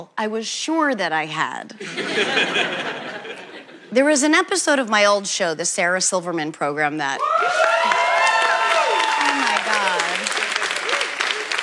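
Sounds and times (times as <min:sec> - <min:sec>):
speech: 0:00.0 - 0:03.1, 0:03.9 - 0:07.7
laughter: 0:01.8 - 0:03.9
studio audience whoops and cheers: 0:07.2 - 0:11.4
studio audience applause: 0:07.2 - 0:11.6.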